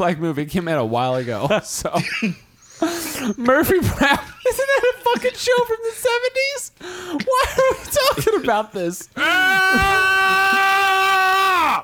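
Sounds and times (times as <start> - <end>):
speech: 0.0 - 2.5, 3.2 - 10.6
screaming: 9.2 - 11.8.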